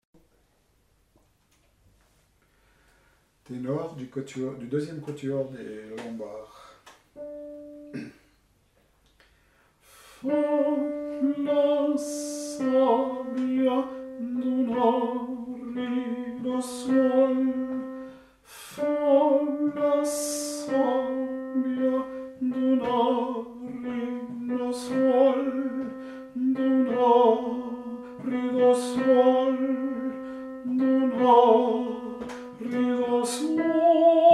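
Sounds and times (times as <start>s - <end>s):
tenor singing: 10.2s - 34.3s.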